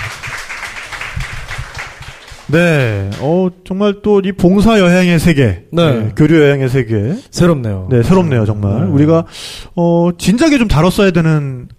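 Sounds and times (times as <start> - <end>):
applause: 0.0 - 3.2
speech: 2.5 - 11.7.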